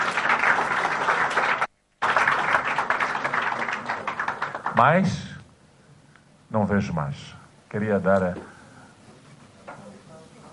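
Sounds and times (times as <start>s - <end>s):
round of applause: 0.0s - 5.2s
speech: 4.8s - 5.3s, 6.5s - 8.5s.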